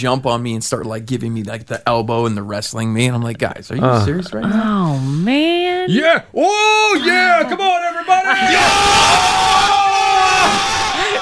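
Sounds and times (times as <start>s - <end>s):
speech: 0.0s - 9.6s
crowd cheering the Leafs at Maple Leaf Square: 6.5s - 11.1s.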